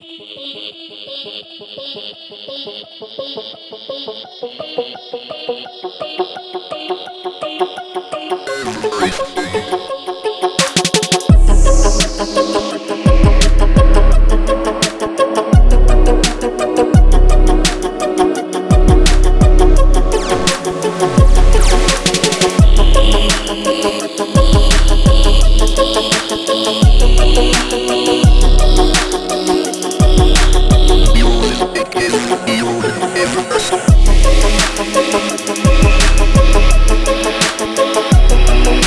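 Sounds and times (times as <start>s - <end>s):
trap beat: 8.5s - 38.8s.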